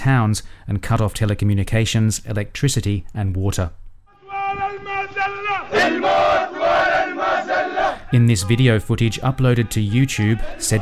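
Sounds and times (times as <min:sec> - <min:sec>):
speech: 0:00.0 - 0:03.8, 0:08.1 - 0:10.8
young men chanting at a protest in Al-Ramla: 0:04.1 - 0:10.8.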